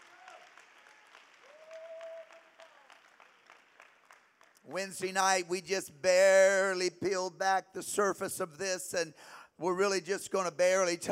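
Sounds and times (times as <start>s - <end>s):
crowd clapping hands in praise: 0.0s - 4.6s
speech: 4.7s - 11.0s.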